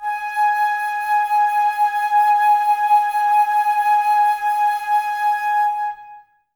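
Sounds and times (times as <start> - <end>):
flute: 0.0 - 6.5.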